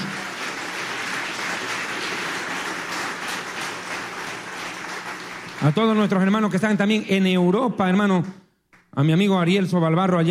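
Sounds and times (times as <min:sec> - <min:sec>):
audience applauding: 0:00.0 - 0:06.8
speech: 0:05.6 - 0:08.4, 0:09.0 - 0:10.2.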